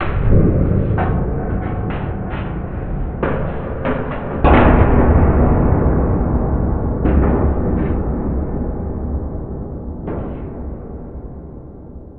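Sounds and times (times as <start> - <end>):
distant big hit: 0.0 - 8.5.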